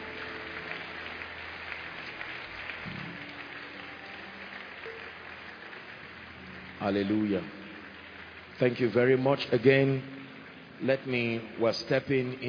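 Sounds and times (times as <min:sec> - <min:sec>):
audience applause: 0:00.0 - 0:09.8
speech: 0:06.8 - 0:07.6, 0:08.6 - 0:10.2, 0:10.8 - 0:12.4.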